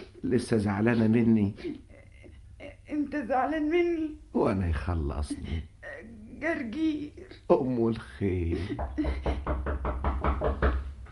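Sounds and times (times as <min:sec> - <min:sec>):
low constant hum: 0:00.0 - 0:11.1
speech: 0:00.2 - 0:01.9, 0:02.9 - 0:09.6
knocking on a door: 0:08.8 - 0:10.9.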